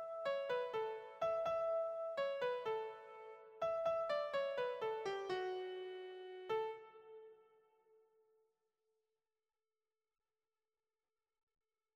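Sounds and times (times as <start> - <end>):
piano: 0.0 - 7.7.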